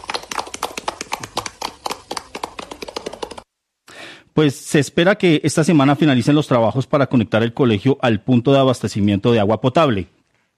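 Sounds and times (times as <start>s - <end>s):
group of students clapping and applauding: 0.0s - 3.4s
speech: 4.4s - 10.2s.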